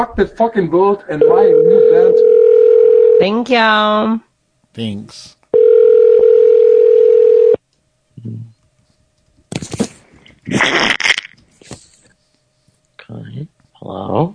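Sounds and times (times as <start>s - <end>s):
speech: 0.0s - 2.3s, 3.2s - 5.4s, 13.9s - 14.3s
telephone ringing tone: 1.2s - 3.4s, 5.6s - 7.6s.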